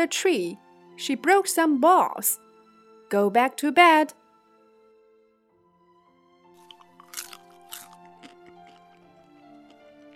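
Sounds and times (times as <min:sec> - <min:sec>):
speech: 0:00.0 - 0:02.4, 0:03.1 - 0:04.2
crunching cookies being eaten: 0:06.5 - 0:10.1.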